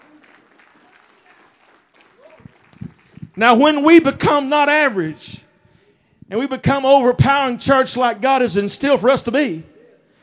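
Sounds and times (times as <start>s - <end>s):
audience clapping: 0.0s - 3.8s
speech: 3.4s - 5.4s, 6.3s - 9.7s.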